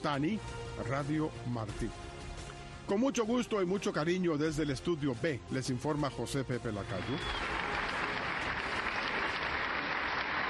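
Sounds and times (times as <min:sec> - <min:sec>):
speech: 0:00.0 - 0:02.1, 0:02.9 - 0:07.4
applause sound effect: 0:06.8 - 0:10.4.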